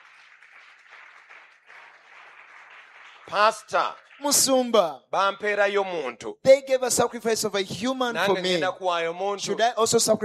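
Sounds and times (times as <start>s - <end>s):
audience clapping: 0.0s - 5.0s
speech: 3.3s - 10.2s.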